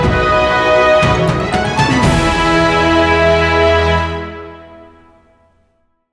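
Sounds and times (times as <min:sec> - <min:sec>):
inspiring hopeful cinematic music sting bumper: 0:00.2 - 0:04.7.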